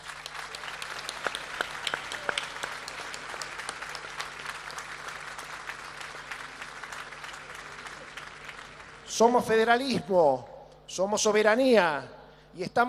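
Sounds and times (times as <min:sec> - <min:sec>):
audience applause: 0:00.0 - 0:09.1
speech: 0:09.2 - 0:12.8.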